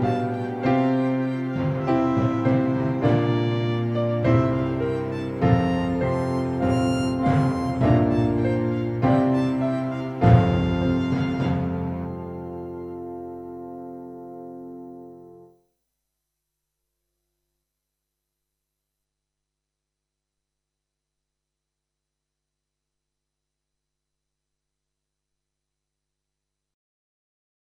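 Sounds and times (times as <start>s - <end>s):
orchestra playing a school hymn: 0.0s - 14.0s.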